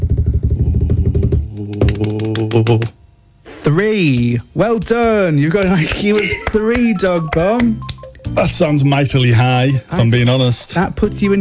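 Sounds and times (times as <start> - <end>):
drum roll done by voice: 0.0 - 3.0
speech: 2.6 - 3.0, 3.6 - 11.3.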